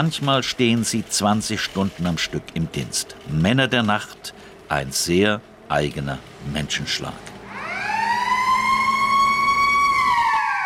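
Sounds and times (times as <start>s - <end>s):
speech: 0.0s - 7.3s
siren sounding at market hall opening: 7.4s - 10.6s.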